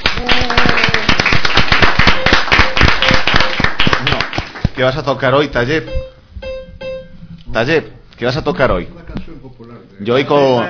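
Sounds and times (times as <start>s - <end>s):
applause: 0.0s - 4.8s
speech: 4.8s - 6.2s, 7.6s - 9.1s, 10.0s - 10.6s.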